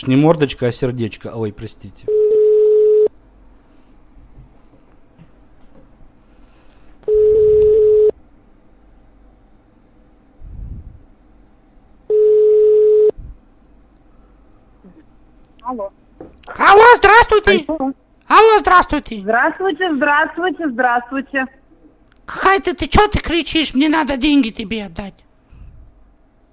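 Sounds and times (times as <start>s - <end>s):
speech: 0.0s - 2.3s, 15.7s - 15.9s, 17.3s - 21.6s, 22.3s - 25.3s
telephone beeps during an outgoing call: 2.1s - 3.1s, 7.1s - 8.1s, 12.1s - 13.1s.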